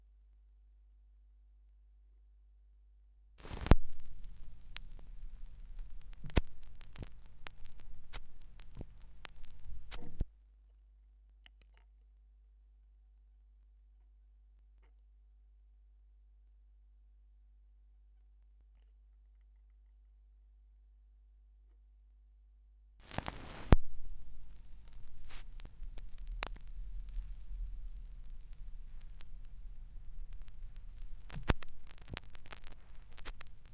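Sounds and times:
vinyl record noise: 3.4 - 10.3, 23.0 - 33.7.

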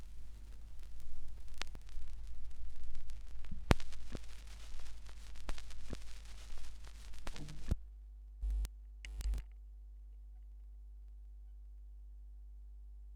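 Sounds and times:
vinyl record noise: 0.0 - 7.8, 8.4 - 9.4.

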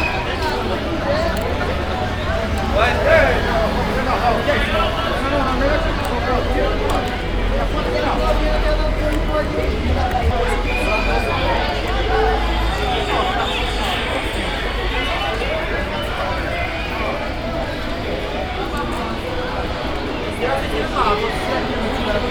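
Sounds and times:
market ambience in Brazil: 0.0 - 22.3.

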